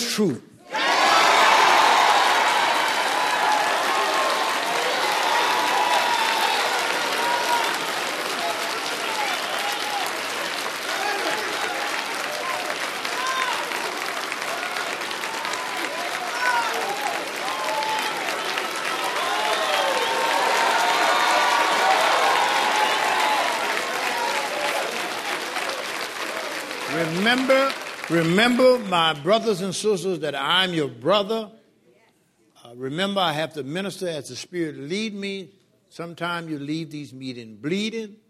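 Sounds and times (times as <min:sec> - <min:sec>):
speech: 0:00.2 - 0:00.5, 0:27.3 - 0:31.6, 0:32.8 - 0:38.2
audience applause: 0:00.8 - 0:29.4.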